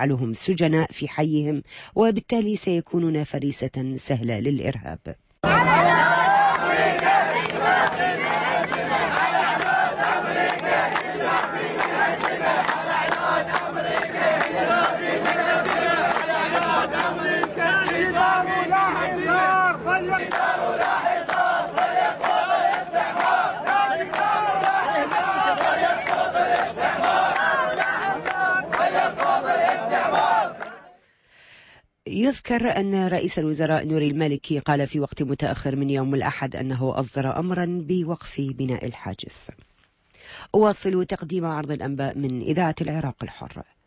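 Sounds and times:
speech: 0:00.0 - 0:06.1, 0:32.2 - 0:39.7, 0:40.3 - 0:43.8
protest crowd chanting: 0:05.4 - 0:31.0.

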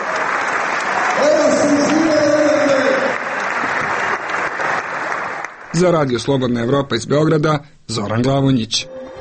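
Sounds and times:
stadium crowd applause: 0:00.0 - 0:06.0
speech: 0:05.8 - 0:09.0.

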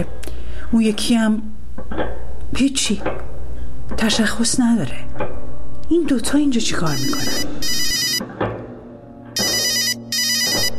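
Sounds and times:
speech: 0:00.0 - 0:03.3, 0:03.9 - 0:07.8
telephone ringing: 0:06.9 - 0:08.2, 0:09.4 - 0:10.7.

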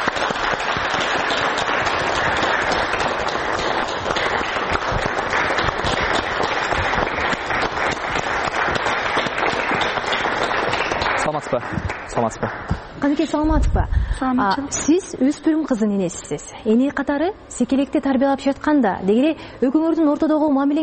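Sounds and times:
audience applause welcoming a parent guest speaker: 0:00.0 - 0:13.0
speech: 0:12.2 - 0:20.8.

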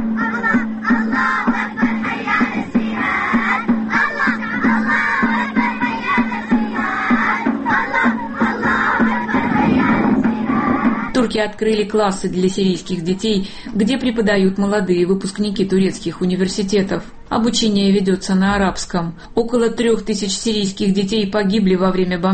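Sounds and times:
teenagers drumming in street: 0:00.0 - 0:13.3
teenagers singing and chanting in street: 0:00.0 - 0:13.4
speech: 0:11.3 - 0:22.3.

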